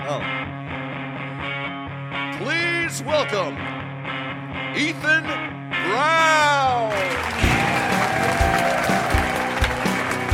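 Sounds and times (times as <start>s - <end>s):
speech: 0.1s - 0.3s, 2.4s - 3.8s, 4.8s - 6.9s
canned studio audience applause: 6.9s - 10.3s.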